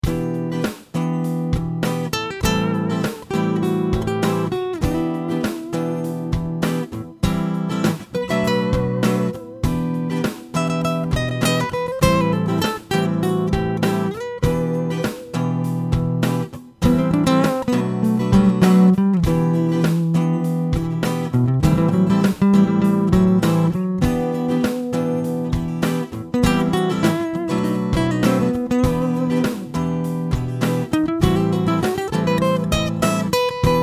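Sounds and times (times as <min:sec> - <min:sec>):
guitar through piezo pickup: 0:00.0 - 0:33.8.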